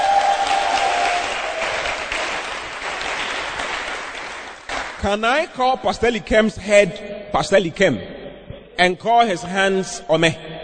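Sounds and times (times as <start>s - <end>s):
audience clapping for arriving pastor: 0.0s - 5.2s
speech: 5.0s - 8.1s, 8.8s - 10.5s.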